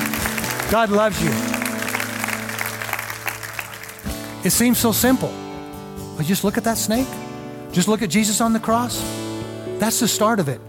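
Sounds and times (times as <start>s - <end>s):
audience clapping hands: 0.0s - 4.7s
speech: 0.7s - 1.6s, 4.4s - 5.4s, 6.2s - 9.2s, 9.8s - 10.6s.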